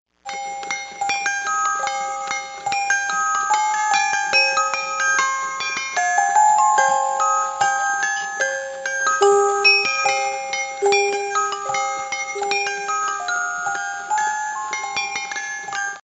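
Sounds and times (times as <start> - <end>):
music box: 0.2 - 16.0.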